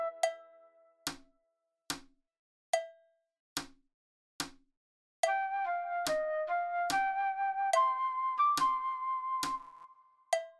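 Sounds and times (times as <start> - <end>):
fast flute playing: 0.0 - 0.3, 5.3 - 9.9.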